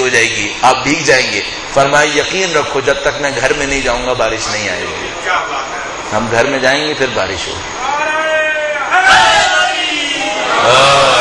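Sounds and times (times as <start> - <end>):
speech: 0.2 - 8.0
crowd shouting the Naara-e-Haidari slogan at a religious gathering: 7.8 - 11.1.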